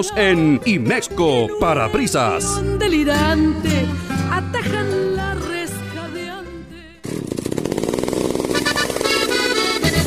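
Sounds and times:
speech: 0.0 - 5.5
chainsaw engine running in a chainsaw dealer advertisement: 7.0 - 10.0.

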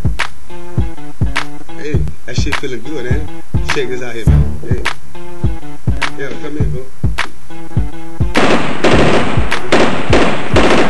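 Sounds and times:
deep evenly spaced bass thumps: 2.0 - 2.2, 3.2 - 6.0, 6.6 - 10.7
speech: 2.4 - 5.0
short tonal musical intro: 4.3 - 4.8
loud burst of gunfire in rapid clustered volleys: 8.4 - 10.8.

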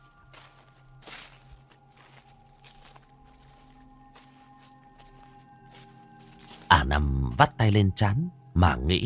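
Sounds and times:
shuffling footsteps: 0.0 - 7.2
speech: 6.9 - 9.0.

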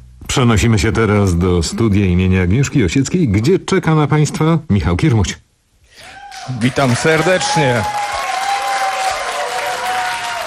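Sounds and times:
speech: 0.4 - 5.4, 6.4 - 8.0
live audience applauding in a radio studio at a concert: 6.2 - 10.4.

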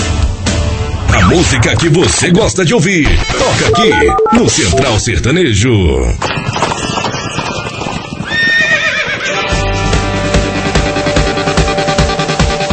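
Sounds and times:
musical backing: 0.0 - 4.9, 9.3 - 12.7
speech: 1.3 - 7.0
galloping hoofbeats: 6.2 - 9.7
horse neighing: 7.3 - 9.6.

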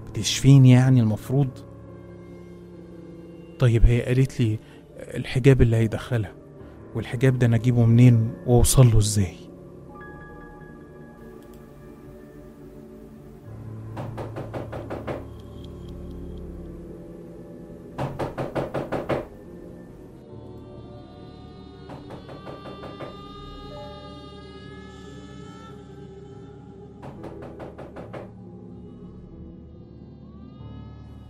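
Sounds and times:
speech: 0.2 - 1.7, 3.6 - 9.4
knocking on a bedroom door: 14.0 - 15.4, 18.0 - 19.4, 21.9 - 23.3, 27.0 - 28.3.

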